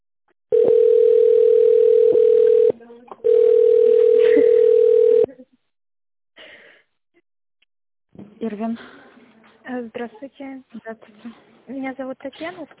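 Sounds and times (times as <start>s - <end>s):
telephone ringback tone: 0.5s - 5.3s
speech: 9.8s - 12.7s.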